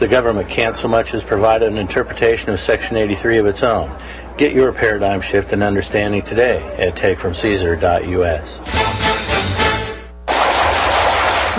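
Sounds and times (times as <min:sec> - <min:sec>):
speech: 0:00.0 - 0:09.1
automatic gunfire: 0:10.3 - 0:11.5.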